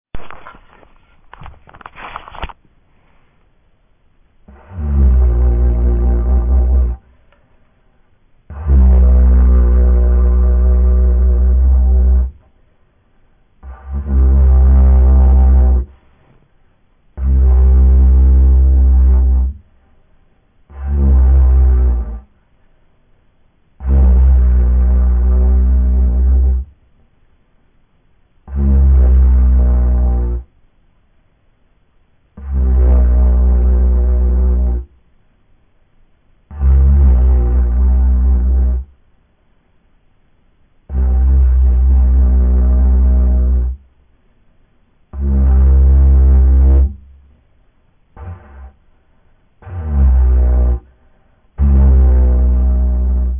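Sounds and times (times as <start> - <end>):
didgeridoo: 4.4 - 7.1, 8.4 - 12.6, 13.6 - 16.3, 17.1 - 19.8, 20.6 - 22.4, 23.7 - 26.8, 28.4 - 30.6, 32.3 - 35.0, 36.5 - 39.0, 40.9 - 43.9, 45.1 - 47.1, 48.1 - 48.8, 49.6 - 53.3.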